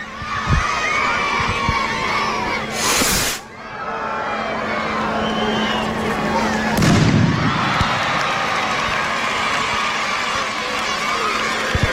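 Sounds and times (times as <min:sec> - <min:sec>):
big crowd shouting and cheering: 0:00.0 - 0:02.8, 0:03.4 - 0:11.9
festival rocket bursts: 0:02.7 - 0:03.5, 0:06.8 - 0:08.1.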